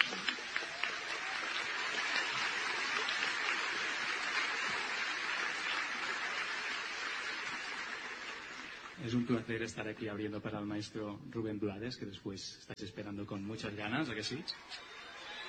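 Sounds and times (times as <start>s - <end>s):
audience applause at the Festival de Jazz de Vitoria: 0.0s - 9.0s, 14.6s - 15.4s
speech: 9.0s - 14.9s.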